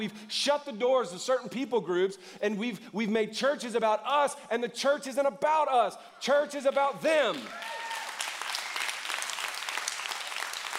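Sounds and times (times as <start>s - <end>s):
speech: 0.0s - 7.8s
audience clapping: 6.7s - 10.7s.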